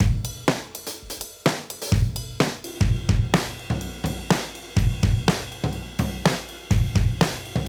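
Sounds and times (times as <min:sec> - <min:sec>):
modern breakbeat music: 0:00.0 - 0:07.6.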